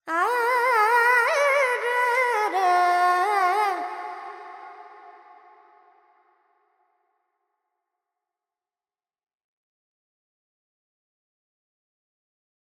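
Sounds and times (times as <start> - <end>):
Carnatic female vocal alaps in Dorian mode: 0.0 - 5.8.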